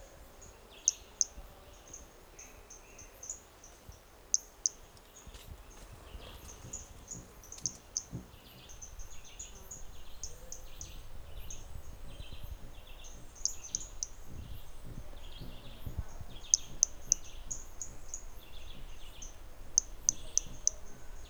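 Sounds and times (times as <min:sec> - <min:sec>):
faint hiss: 0:00.0 - 0:21.2
Hermogenes's toadlet high clicky calls: 0:00.9 - 0:01.4, 0:04.3 - 0:04.8, 0:07.5 - 0:08.1, 0:09.1 - 0:21.2.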